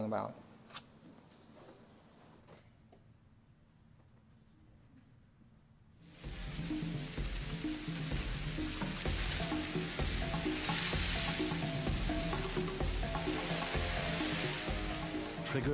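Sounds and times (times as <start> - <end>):
swarm of locusts crackling and rustling: 6.1 - 15.7.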